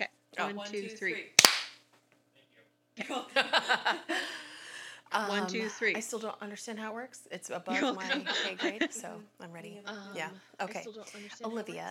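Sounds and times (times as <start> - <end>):
speech: 0.0 - 1.4, 3.0 - 4.5, 5.1 - 11.9
single hand clap for recording sync: 1.4 - 1.8
laughter: 3.0 - 6.0, 7.7 - 9.1.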